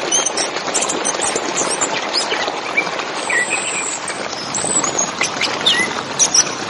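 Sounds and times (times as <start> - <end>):
orange-headed thrush whistled song: 0.1 - 6.6.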